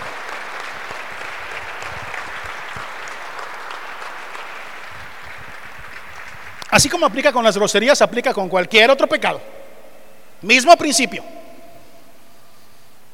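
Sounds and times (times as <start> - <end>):
audience applauding loudly: 0.0 - 9.4
speech: 6.8 - 9.5, 10.4 - 11.4.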